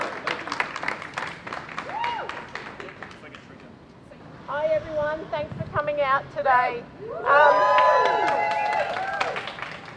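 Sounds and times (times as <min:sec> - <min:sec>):
warm round of applause: 0:00.0 - 0:03.4, 0:07.4 - 0:09.9
speech: 0:04.8 - 0:08.4.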